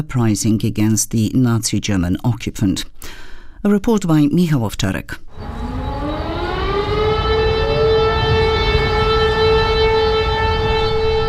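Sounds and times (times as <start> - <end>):
speech: 0.0 - 5.6
civil defense sirens sounding at 5 p.m.: 5.3 - 11.2
low rumble of outdoor noise: 5.3 - 11.2.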